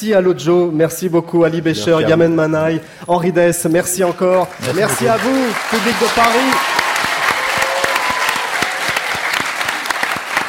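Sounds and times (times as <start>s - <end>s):
speech: 0.0s - 6.8s
studio audience applauding: 4.0s - 10.4s.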